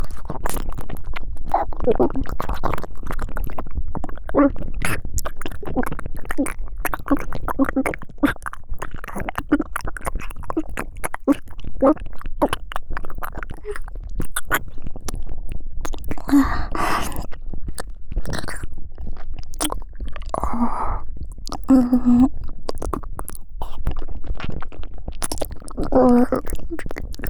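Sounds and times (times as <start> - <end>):
deep ear licking in the right ear: 0.0 - 18.7, 19.5 - 24.0, 25.2 - 27.2.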